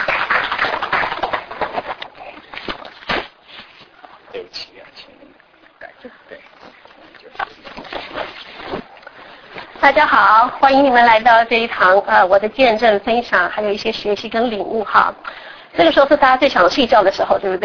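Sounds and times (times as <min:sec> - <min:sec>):
audience applause: 0:00.0 - 0:02.4
speech: 0:09.8 - 0:17.6.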